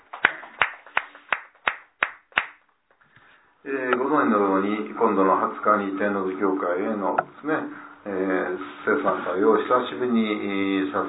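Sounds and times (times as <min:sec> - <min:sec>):
audience applause: 0:00.0 - 0:02.2
speech: 0:03.6 - 0:11.0.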